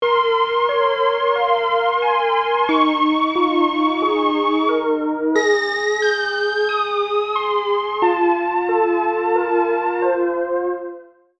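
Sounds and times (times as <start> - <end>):
keyboard playing: 0.0 - 11.0.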